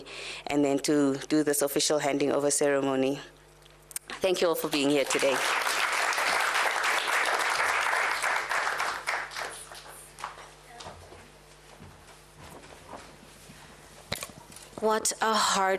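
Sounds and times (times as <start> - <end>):
speech: 0.0 - 3.4, 4.2 - 5.7, 14.8 - 15.7
audience applause: 4.7 - 10.3.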